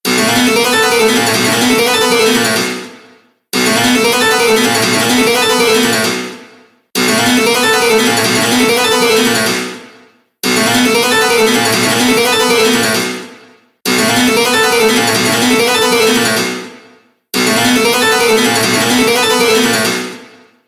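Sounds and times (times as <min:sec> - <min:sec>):
harpsichord ringtone: 0:00.3 - 0:02.8, 0:03.7 - 0:06.2, 0:07.0 - 0:09.6, 0:10.6 - 0:13.1, 0:14.0 - 0:16.6, 0:17.5 - 0:19.9.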